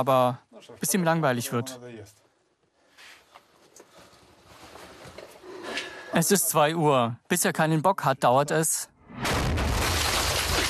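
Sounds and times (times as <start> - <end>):
speech: 0.0 - 2.2, 6.1 - 9.3
powerful gunshot: 9.0 - 10.6.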